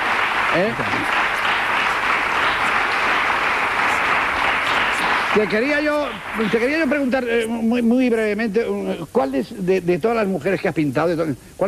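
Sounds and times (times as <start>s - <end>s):
audience ovation: 0.0s - 7.5s
speech: 0.5s - 1.2s, 5.3s - 11.6s.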